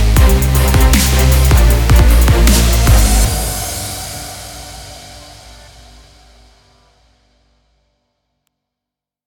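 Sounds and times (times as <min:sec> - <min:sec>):
sport driving music: 0:00.0 - 0:06.3.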